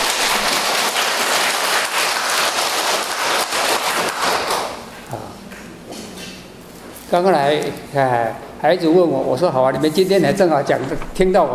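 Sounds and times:
crowd applause: 0:00.0 - 0:04.8
speech: 0:07.1 - 0:11.5.

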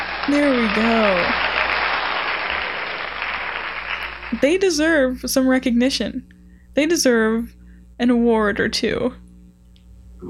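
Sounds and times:
applause: 0:00.0 - 0:04.6
speech: 0:00.3 - 0:01.5, 0:04.4 - 0:09.2.

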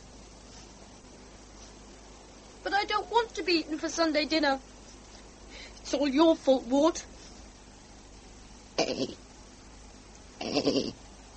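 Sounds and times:
speech: 0:02.6 - 0:04.7, 0:05.9 - 0:07.1, 0:08.9 - 0:09.2, 0:10.6 - 0:11.0
goat bleating: 0:10.4 - 0:11.0.

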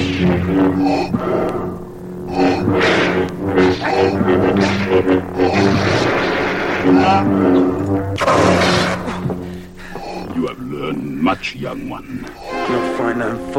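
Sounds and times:
lightsaber clashing bursts: 0:00.0 - 0:10.9
lightsaber humming drones in a Star Wars audio drama: 0:00.0 - 0:13.5
speech: 0:00.2 - 0:05.2, 0:06.8 - 0:08.8, 0:10.9 - 0:13.5
loud harsh crash: 0:02.4 - 0:09.3.

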